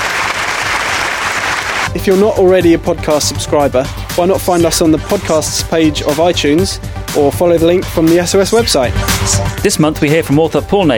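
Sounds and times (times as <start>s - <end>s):
crowd applause: 0.0s - 1.9s
speech: 2.0s - 10.9s.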